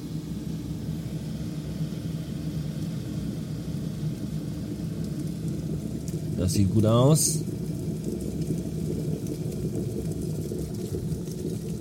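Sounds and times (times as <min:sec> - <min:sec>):
water about to boil: 0:00.0 - 0:11.7
speech: 0:06.4 - 0:07.6.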